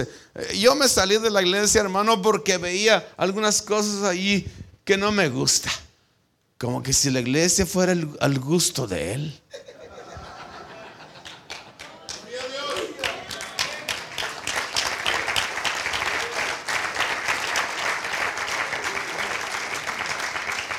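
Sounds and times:
speech: 0.0s - 5.9s, 6.6s - 9.7s
laughter: 9.5s - 14.2s
audience applause: 10.8s - 20.7s.

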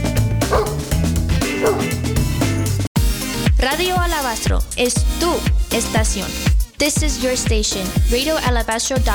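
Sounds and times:
music bed: 0.0s - 9.1s
dog barking: 0.4s - 0.9s, 1.5s - 2.0s
speech: 3.8s - 9.1s.

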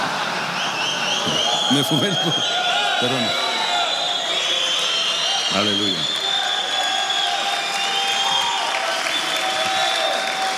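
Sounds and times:
audience applause: 0.0s - 10.5s
speech: 1.7s - 3.5s, 5.5s - 6.2s.

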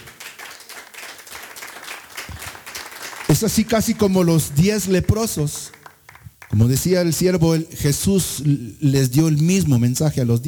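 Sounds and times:
audience clapping hands: 0.0s - 6.8s
speech: 3.3s - 5.8s, 6.5s - 10.4s.

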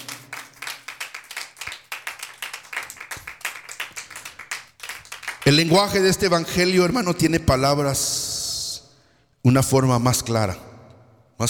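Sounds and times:
audience clapping hands: 0.0s - 6.3s
speech: 5.5s - 8.2s, 9.4s - 10.7s.

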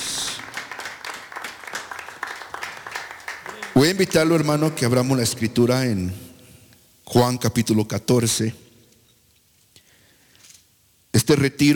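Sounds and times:
audience clapping: 0.0s - 4.7s
speech: 3.8s - 6.2s, 7.1s - 8.6s, 11.3s - 11.7s.

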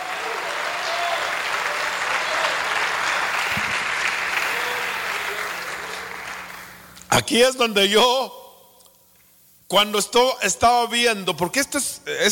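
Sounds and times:
audience applause: 0.0s - 6.6s
speech: 7.2s - 8.4s, 9.7s - 12.3s.

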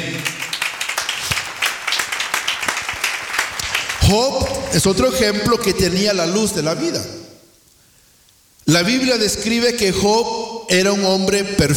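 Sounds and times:
audience clapping hands: 0.0s - 5.1s
speech: 4.1s - 7.2s, 8.7s - 11.7s.

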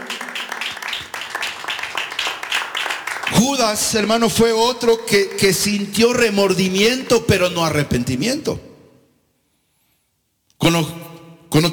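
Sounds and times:
audience clapping: 0.0s - 4.5s
speech: 3.3s - 8.7s, 10.6s - 11.0s.

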